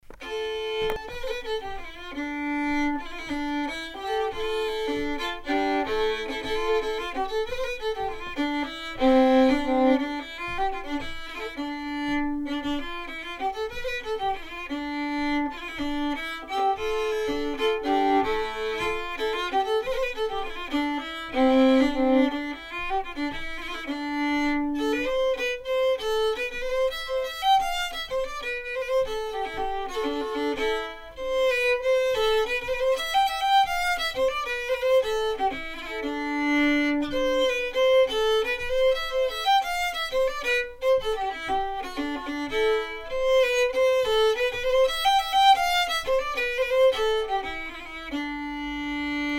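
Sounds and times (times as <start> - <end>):
polska folk tune: 0.0 - 49.3.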